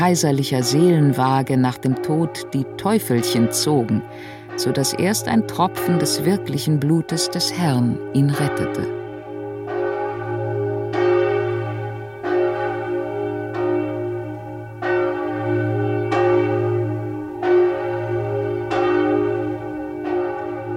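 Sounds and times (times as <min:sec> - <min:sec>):
speech: 0:00.0 - 0:09.0
deep cathedral church bell tolling: 0:00.0 - 0:20.7.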